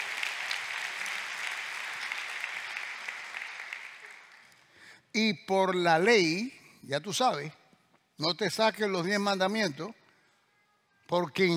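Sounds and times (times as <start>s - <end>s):
audience applause: 0.0s - 4.6s
speech: 5.2s - 7.6s, 8.2s - 10.0s, 11.1s - 11.5s.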